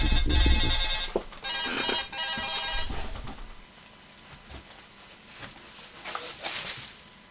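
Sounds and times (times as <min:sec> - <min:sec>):
alarm clock ringing: 0:00.0 - 0:03.6.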